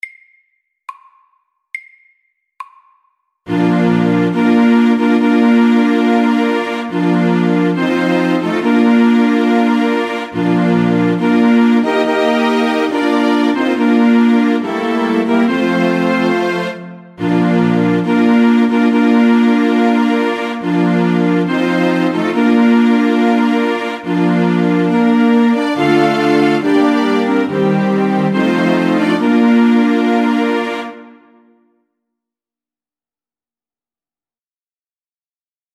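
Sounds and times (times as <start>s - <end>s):
wedding march music: 3.5s - 31.5s.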